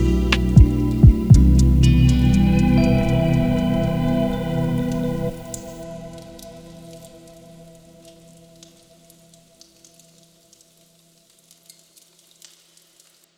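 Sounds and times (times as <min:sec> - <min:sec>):
lofi hip hop: 0:00.0 - 0:05.8.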